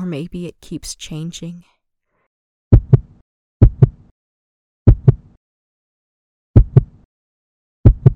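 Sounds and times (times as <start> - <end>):
speech: 0.1 - 1.8
heartbeat thudding: 2.7 - 4.0, 4.9 - 5.3, 6.6 - 7.0, 7.8 - 8.1.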